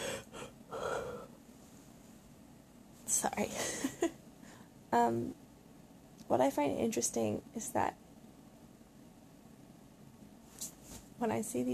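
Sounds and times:
person yawning: 0.0s - 1.3s
speech: 3.1s - 4.2s, 4.9s - 5.4s, 6.3s - 8.0s, 11.2s - 11.7s.

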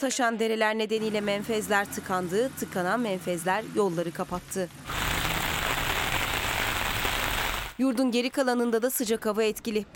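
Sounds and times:
speech: 0.0s - 5.2s, 7.8s - 9.9s
heavy rain falling: 4.9s - 7.8s.

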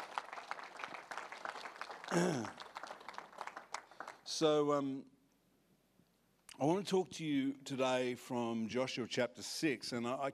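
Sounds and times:
crowd clapping: 0.0s - 4.4s
speech: 2.1s - 2.6s, 4.3s - 5.1s, 6.6s - 10.3s.

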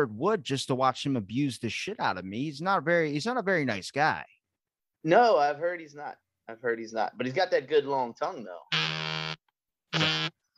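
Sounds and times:
speech: 0.0s - 4.4s, 5.0s - 8.9s
smart doorbell motion alert on phone: 8.7s - 10.3s.

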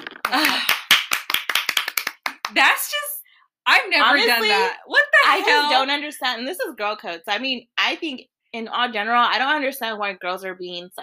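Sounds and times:
hand claps: 0.0s - 2.7s
speech: 2.5s - 3.0s, 3.7s - 11.0s.

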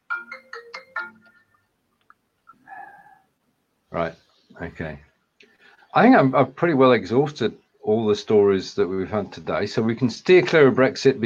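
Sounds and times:
phone ringtone: 0.0s - 1.7s
speech: 3.9s - 5.1s, 6.0s - 11.2s.

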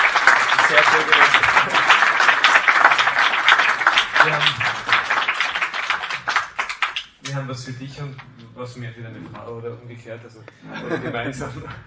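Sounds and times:
applause: 0.0s - 7.4s
speech: 0.7s - 1.8s, 7.4s - 11.8s
laughter: 4.1s - 5.0s, 10.6s - 11.8s.

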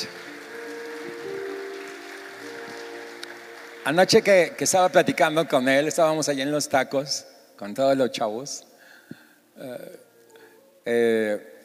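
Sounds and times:
applause: 0.0s - 6.4s
speech: 3.9s - 8.7s, 9.6s - 10.0s, 10.8s - 11.5s.

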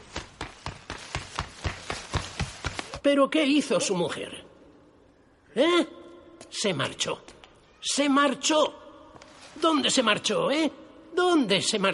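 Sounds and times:
girl's running footsteps: 0.0s - 3.0s
speech: 3.0s - 4.4s, 5.6s - 6.0s, 6.6s - 8.8s, 9.6s - 11.9s.

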